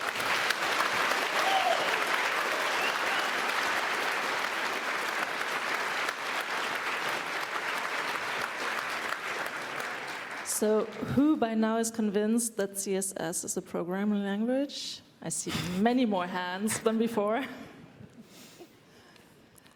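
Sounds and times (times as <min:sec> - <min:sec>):
audience applause: 0:00.0 - 0:11.0
speech: 0:10.6 - 0:17.6.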